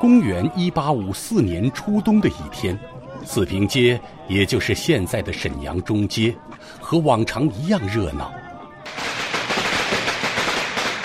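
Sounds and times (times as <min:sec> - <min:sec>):
speech: 0:00.0 - 0:09.0
string of firecrackers popping: 0:08.9 - 0:11.0.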